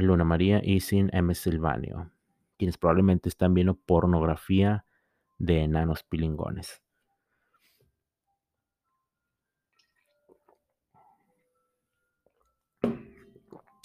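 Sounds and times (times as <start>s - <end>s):
speech: 0.0s - 6.8s
sipping coffee: 9.7s - 13.8s.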